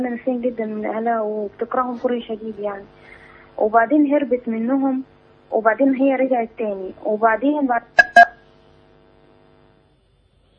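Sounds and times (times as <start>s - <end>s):
speech: 0.0s - 8.3s
electronic beep of a telephone call cut off: 8.0s - 8.4s
faint telephone tone: 8.0s - 8.4s.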